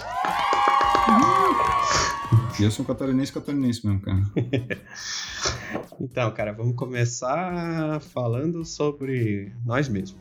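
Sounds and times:
crowd applauding: 0:00.0 - 0:03.1
high whoops and shouting voices: 0:00.0 - 0:03.2
laughter: 0:01.0 - 0:02.9, 0:04.2 - 0:05.8
speech: 0:01.1 - 0:01.3, 0:02.6 - 0:10.1.

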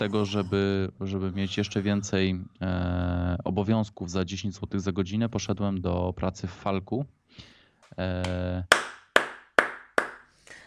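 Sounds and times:
speech: 0:00.0 - 0:08.8
hand clapping applause: 0:08.2 - 0:10.3.

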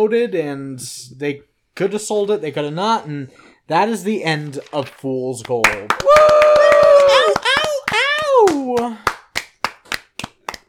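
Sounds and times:
speech: 0:00.0 - 0:06.2, 0:08.5 - 0:09.0
hand claps to sync audio: 0:04.7 - 0:10.6.

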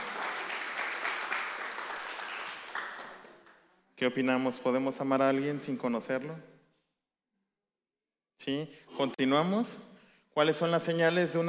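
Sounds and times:
crowd applause: 0:00.0 - 0:03.6
speech: 0:04.0 - 0:06.5, 0:08.4 - 0:11.4.

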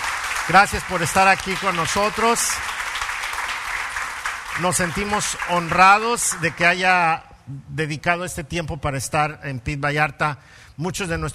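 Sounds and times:
crowd applause of welcome: 0:00.0 - 0:06.8
speech: 0:00.5 - 0:02.8, 0:04.6 - 0:11.3.

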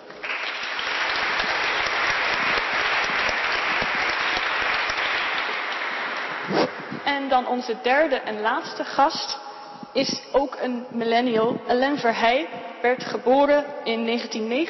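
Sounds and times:
audience applause: 0:00.0 - 0:07.0
speech: 0:07.2 - 0:09.4, 0:10.0 - 0:14.6.

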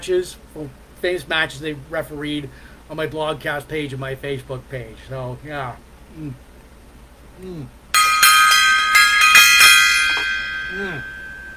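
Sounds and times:
speech: 0:00.0 - 0:06.4, 0:07.4 - 0:07.8, 0:10.7 - 0:11.1
gong being struck: 0:08.0 - 0:11.5.

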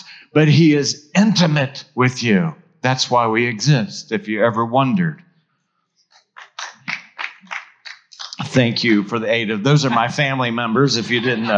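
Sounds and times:
laughter: 0:00.0 - 0:04.6, 0:08.2 - 0:11.5
speech: 0:00.3 - 0:05.3, 0:08.5 - 0:11.5
few people clapping: 0:06.4 - 0:08.9.

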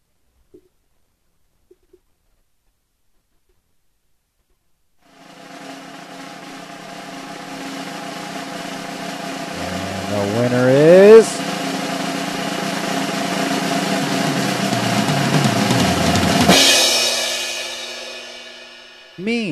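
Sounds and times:
drum roll sound effect: 0:05.1 - 0:19.5
speech: 0:10.4 - 0:10.7.

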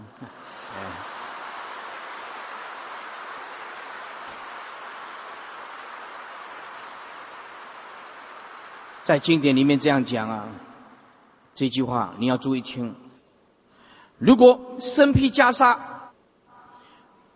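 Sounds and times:
audience applause: 0:00.0 - 0:11.4
speech: 0:09.1 - 0:10.6, 0:11.6 - 0:13.0, 0:14.2 - 0:15.9.

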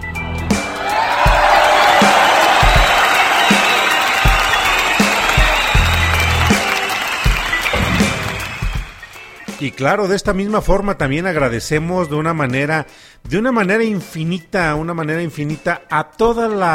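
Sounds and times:
crowd applause: 0:00.5 - 0:09.6
cheering and whoops: 0:00.6 - 0:09.1
speech: 0:09.7 - 0:16.7.

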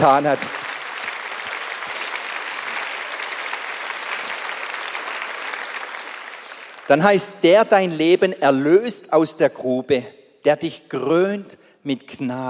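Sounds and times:
speech: 0:00.0 - 0:00.6, 0:06.9 - 0:12.4
audience applause: 0:00.0 - 0:07.3.

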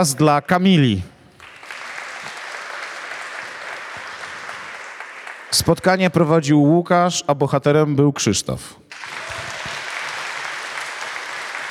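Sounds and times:
speech: 0:00.0 - 0:01.1, 0:05.5 - 0:08.9
audience applause: 0:01.4 - 0:05.8, 0:08.9 - 0:11.7.

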